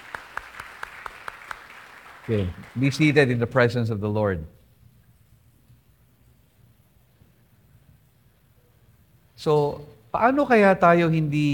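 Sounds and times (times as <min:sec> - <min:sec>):
loud applause: 0:00.0 - 0:03.2
speech: 0:02.3 - 0:04.6, 0:09.4 - 0:11.5.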